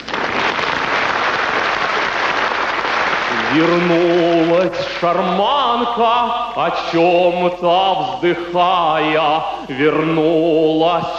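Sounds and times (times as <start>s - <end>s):
audience applause: 0.0s - 4.6s
speech: 3.5s - 11.1s.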